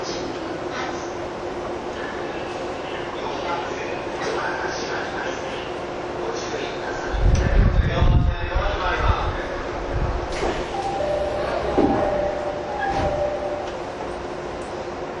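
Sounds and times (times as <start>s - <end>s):
TWR 70-000 series train rumble on a Saikyo Line rapid run: 0.0s - 15.1s.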